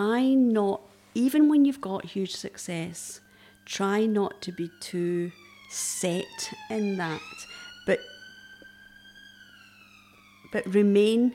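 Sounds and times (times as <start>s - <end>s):
speech: 0.0s - 8.1s, 10.5s - 11.3s
fire alarm ringing: 2.4s - 11.3s.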